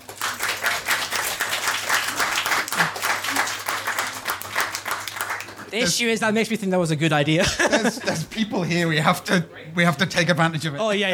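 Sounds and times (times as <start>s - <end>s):
audience round of applause: 0.0s - 5.8s
laughter: 2.6s - 3.6s, 7.3s - 9.0s
speech: 5.7s - 11.1s.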